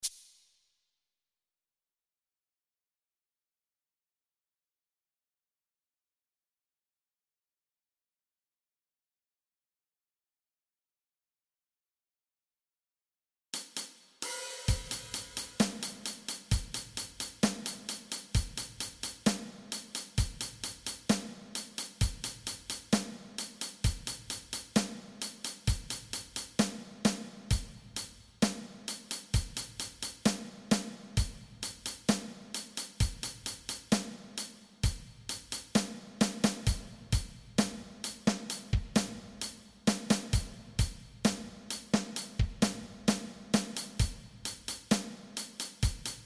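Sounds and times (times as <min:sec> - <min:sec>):
drums: 0:13.6 - 0:46.2.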